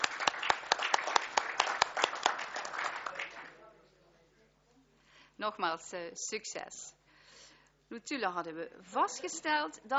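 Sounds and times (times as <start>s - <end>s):
applause: 0.0s - 3.6s
speech: 5.4s - 7.0s, 7.9s - 9.9s.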